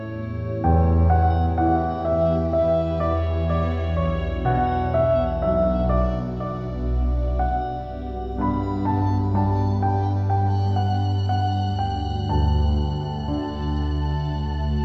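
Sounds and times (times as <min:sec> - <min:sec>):
soft piano music: 0:00.0 - 0:14.8.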